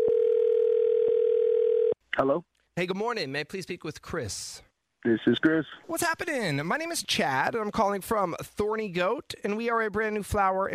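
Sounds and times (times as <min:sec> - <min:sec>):
telephone dial tone of outgoing call: 0:00.0 - 0:02.0
speech: 0:02.2 - 0:10.7.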